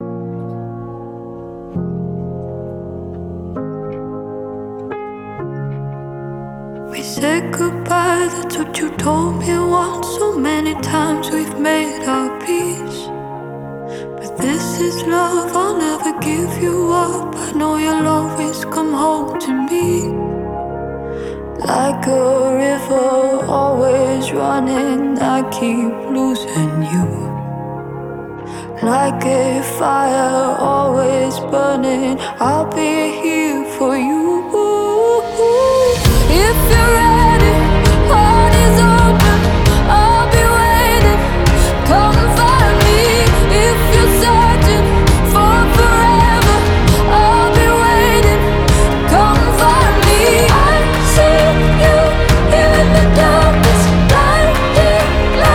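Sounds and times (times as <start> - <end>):
acoustic music: 0.0 - 55.5.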